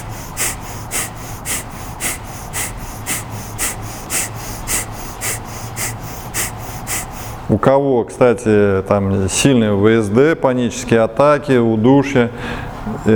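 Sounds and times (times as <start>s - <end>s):
forceful nasal exhalations in kapalabhati yoga breathing: 0.0s - 7.5s
speech: 7.5s - 13.1s.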